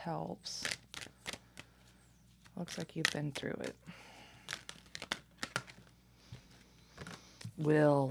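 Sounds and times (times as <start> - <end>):
speech: 0.0 - 1.1, 2.6 - 4.1, 7.6 - 8.0
Moon of the Oracle cards being drawn: 0.6 - 7.6.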